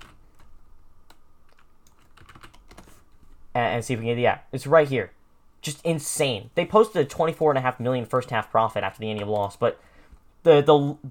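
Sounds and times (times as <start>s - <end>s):
typing on a computer keyboard: 1.1s - 3.0s
speech: 3.6s - 11.0s.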